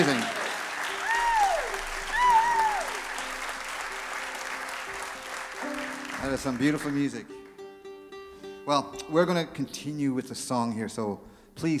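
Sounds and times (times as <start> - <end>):
concert audience applause: 0.0 - 7.6
speech: 6.4 - 7.4, 8.7 - 11.7.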